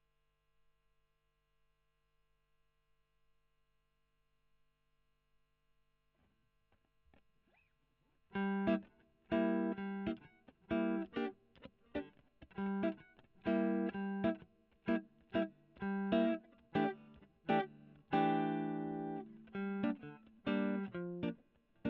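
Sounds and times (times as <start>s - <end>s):
electric guitar recorded with a Gefell microphone: 8.3s - 21.8s.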